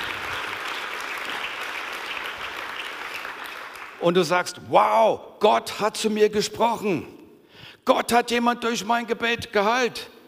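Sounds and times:
audience applause: 0.0 - 4.0
speech: 4.0 - 7.2, 7.8 - 10.2.

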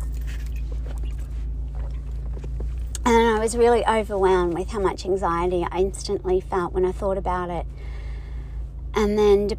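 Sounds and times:
person drinking water: 0.2 - 3.0
speech: 3.4 - 7.9, 9.0 - 9.5.

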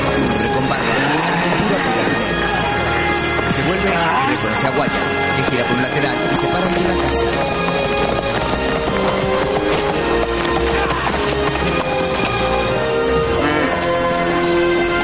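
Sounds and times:
horse hooves clip-clopping in the 1994 western film Wyatt Earp: 0.0 - 15.0
speech: 3.6 - 8.2.

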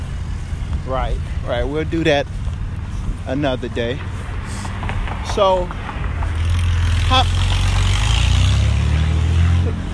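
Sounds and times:
passing truck with a bad muffler rumbling: 0.0 - 9.9
speech: 0.9 - 2.4, 3.2 - 4.2, 5.3 - 5.8, 7.1 - 7.4.

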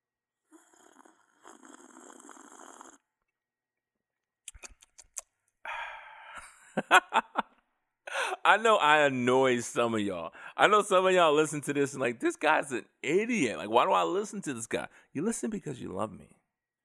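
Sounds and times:
person slurping hot tea: 0.5 - 3.1
quick clicks and gulps while drinking tea: 4.4 - 5.4
laughter: 6.2 - 7.6
speech: 6.8 - 7.3, 8.4 - 16.4.

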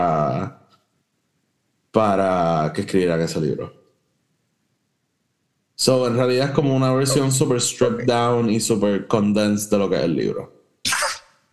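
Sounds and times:
speech: 2.0 - 3.8, 5.8 - 10.6
cough: 10.9 - 11.3.

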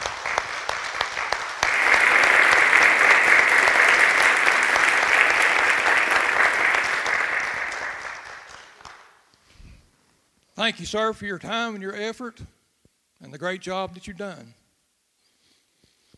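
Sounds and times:
audience applause: 0.0 - 9.2
speech: 10.6 - 12.6, 13.3 - 14.6.

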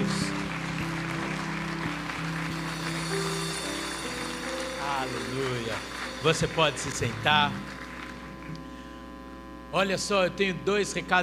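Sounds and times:
large crowd clapping steadily: 0.0 - 8.8
speech: 5.0 - 7.8, 9.7 - 11.2.

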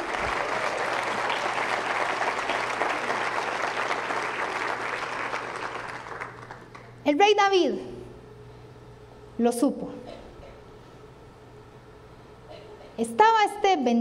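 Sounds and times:
audience applauding: 0.0 - 6.9
speech: 7.1 - 7.9, 9.4 - 10.0, 13.0 - 13.9.

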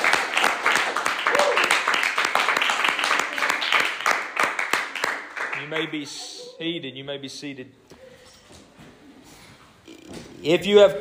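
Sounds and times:
audience clapping hands: 0.0 - 6.1
speech: 5.7 - 7.8, 10.4 - 10.9.

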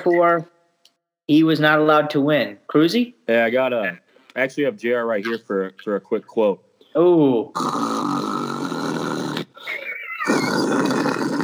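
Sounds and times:
speech: 0.0 - 0.6, 1.3 - 8.2
snoring: 7.5 - 11.4.

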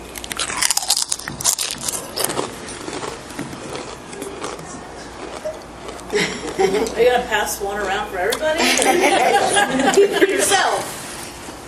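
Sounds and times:
crunching on flavored potato chips: 0.0 - 6.2
laughter: 5.4 - 7.3, 8.4 - 10.8
speech: 7.0 - 10.9.

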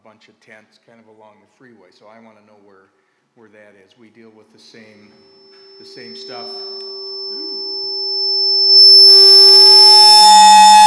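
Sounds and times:
speech: 0.1 - 7.4
phone timer alarm tone: 5.3 - 10.8.

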